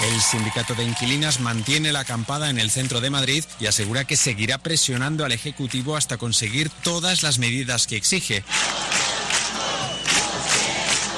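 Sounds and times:
speech: 0.2 - 9.0
large protest crowd chanting slogans in unison: 8.5 - 11.1.

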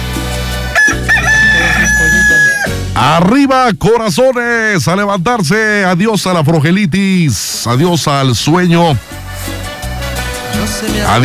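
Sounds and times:
rooster crowing: 0.7 - 2.8
speech: 3.0 - 9.2, 10.6 - 11.2.

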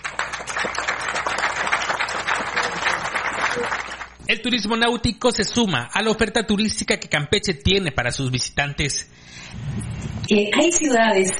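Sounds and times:
crowd applauding: 0.0 - 4.2
speech: 3.6 - 11.3.

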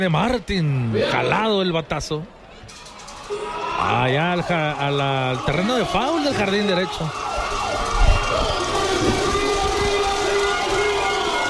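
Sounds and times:
speech: 0.0 - 2.4, 3.3 - 7.3
excited baseball crowd cheering for the Algodoneros: 2.7 - 11.4
sustained siren-like wail: 3.3 - 11.4.

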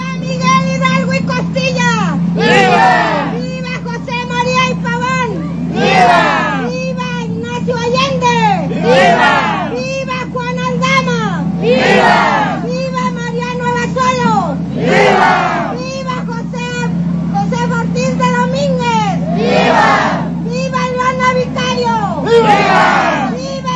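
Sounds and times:
murmur of chatter: 0.0 - 23.7
large crowd cheering and shouting at independence celebration: 2.4 - 3.4, 5.7 - 6.8, 8.3 - 9.8, 11.6 - 12.7, 14.5 - 15.8, 19.2 - 20.4, 22.2 - 23.4.

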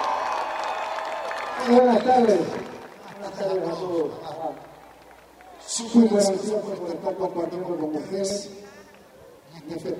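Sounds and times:
people whooping and cheering: 0.0 - 2.4
crowd clapping: 0.0 - 6.0
speech: 1.6 - 2.7, 3.3 - 4.7, 5.7 - 8.8, 9.6 - 9.9.

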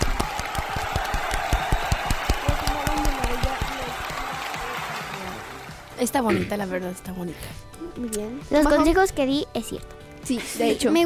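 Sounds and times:
applause: 0.0 - 6.2
speech: 6.0 - 11.0.

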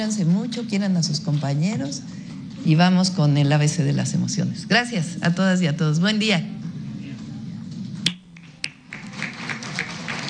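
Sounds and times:
speech: 0.0 - 6.7
audience applause: 8.8 - 10.2.

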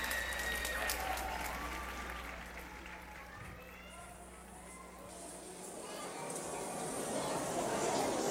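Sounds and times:
audience ovation applause: 0.0 - 5.0
crowd voices: 0.0 - 8.2.

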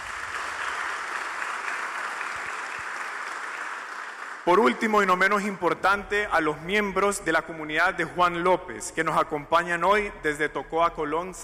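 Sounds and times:
applause: 0.0 - 5.6
speech: 4.4 - 11.4.

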